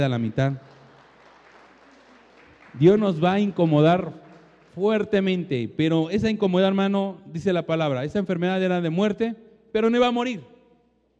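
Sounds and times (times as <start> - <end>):
speech: 0.0 - 0.8, 2.8 - 4.2, 4.8 - 10.5
audience clapping: 0.0 - 5.5.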